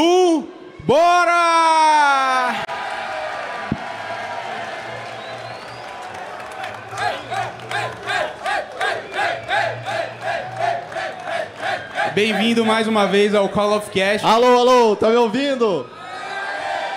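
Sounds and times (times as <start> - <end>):
live crowd cheering and shouting: 0.0 - 16.9
speech: 0.9 - 1.6, 12.2 - 16.0.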